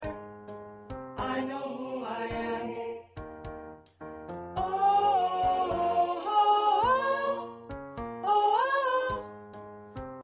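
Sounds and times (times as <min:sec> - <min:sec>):
soprano singing choir parts: 0:01.2 - 0:03.2, 0:04.6 - 0:09.5.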